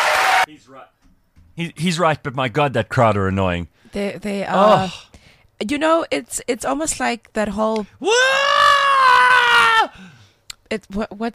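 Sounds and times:
speech: 0:00.5 - 0:08.8, 0:09.8 - 0:11.3
person imitating a hysterical scream: 0:08.0 - 0:10.0.

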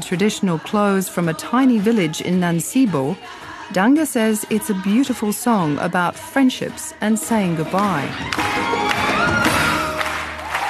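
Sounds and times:
speech: 0:00.0 - 0:08.9
crowd cheering: 0:07.7 - 0:10.6
audience standing ovation applause: 0:07.8 - 0:10.6.

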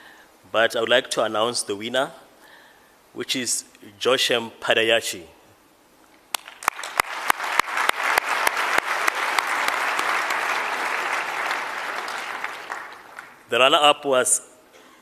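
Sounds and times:
speech: 0:00.5 - 0:02.2, 0:03.1 - 0:05.4, 0:13.5 - 0:14.5
audience applause: 0:06.3 - 0:13.5.

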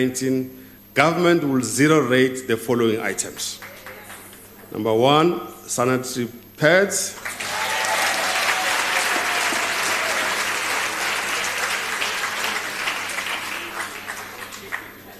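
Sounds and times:
speech: 0:00.0 - 0:03.7, 0:04.7 - 0:07.5
audience applause: 0:07.2 - 0:15.1.

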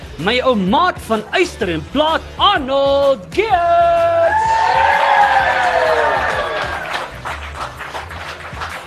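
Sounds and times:
speech: 0:00.2 - 0:05.1
crowd cheering and whooping to welcome a performer: 0:04.2 - 0:07.1
steady scattered applause: 0:04.3 - 0:08.8.

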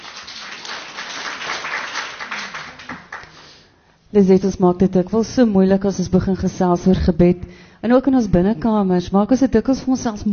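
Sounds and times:
group applause: 0:00.0 - 0:03.6
speech: 0:04.1 - 0:10.3.

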